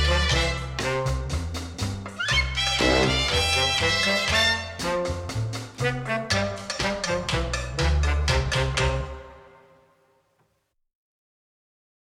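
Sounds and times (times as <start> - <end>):
comic cha cha music: 0.0 - 9.6.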